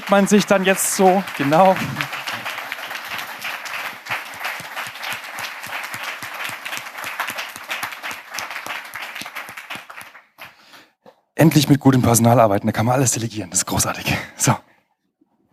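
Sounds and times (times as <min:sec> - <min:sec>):
audience applause: 0:00.0 - 0:10.6
speech: 0:00.1 - 0:02.1, 0:11.4 - 0:14.6.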